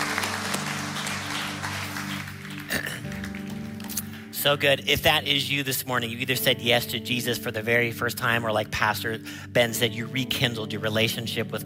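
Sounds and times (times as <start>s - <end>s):
audience applause: 0.0s - 4.1s
speech: 4.4s - 11.6s.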